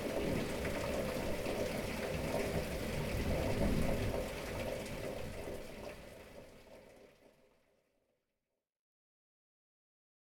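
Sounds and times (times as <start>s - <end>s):
thunderstorm: 0.1s - 5.7s.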